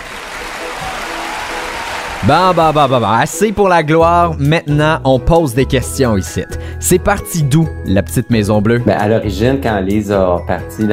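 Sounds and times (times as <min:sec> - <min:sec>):
audience clapping: 0:00.0 - 0:03.6
speech: 0:02.2 - 0:10.9.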